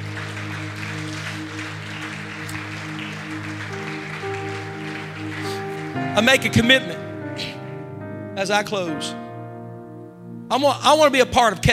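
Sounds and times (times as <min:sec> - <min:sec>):
audience clapping hands: 0:00.0 - 0:07.6
speech: 0:06.2 - 0:07.0, 0:08.4 - 0:09.2, 0:10.5 - 0:11.7.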